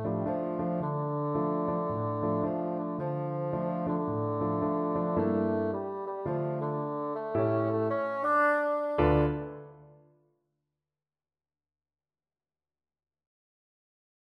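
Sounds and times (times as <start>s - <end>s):
bassoon: 0.0s - 10.0s.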